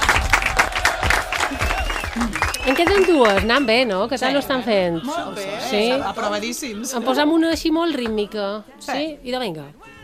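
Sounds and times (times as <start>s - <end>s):
group clapping: 0.0s - 6.3s, 7.3s - 8.4s
speech: 2.2s - 9.9s.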